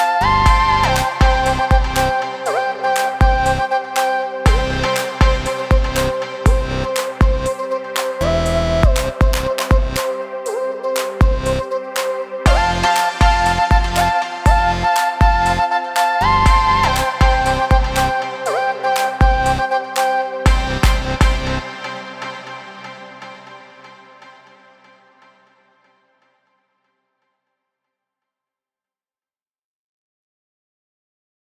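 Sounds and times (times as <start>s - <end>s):
music loop: 0.0s - 23.6s.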